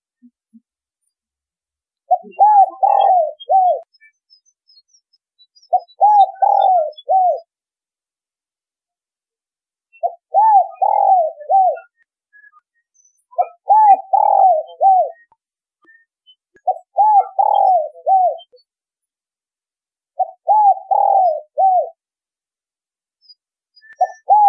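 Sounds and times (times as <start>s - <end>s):
spotted dove cooing: 2.1s - 3.9s, 5.7s - 7.5s, 10.0s - 12.0s, 13.4s - 15.3s, 16.6s - 18.5s, 20.2s - 22.0s, 24.0s - 24.4s.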